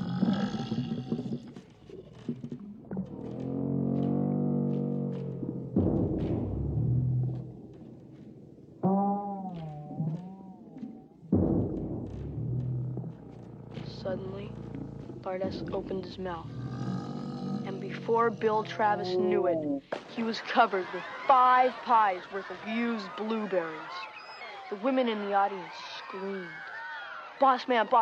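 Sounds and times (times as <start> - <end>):
voice imitating a loud rumbling stomach: 0.0 - 7.6, 8.8 - 19.8
speech: 15.3 - 16.6, 18.1 - 24.1, 24.7 - 26.6, 27.4 - 27.9
laughter: 18.0 - 27.9.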